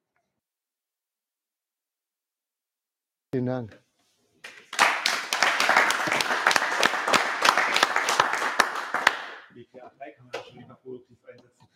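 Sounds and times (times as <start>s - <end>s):
speech: 3.3s - 3.8s, 9.6s - 11.7s
audience applause: 4.4s - 9.5s.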